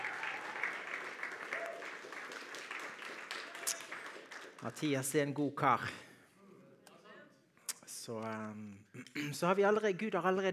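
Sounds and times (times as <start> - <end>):
church congregation applauding a worship leader: 0.0 - 5.2
speech: 4.6 - 6.0, 8.1 - 10.5.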